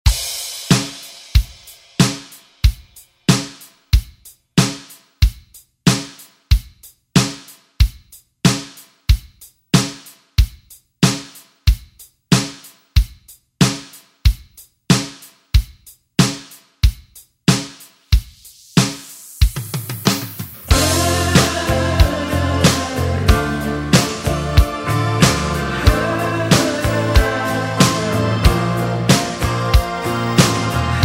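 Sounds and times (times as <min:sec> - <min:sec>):
eighties drum beat: 0:00.0 - 0:31.0.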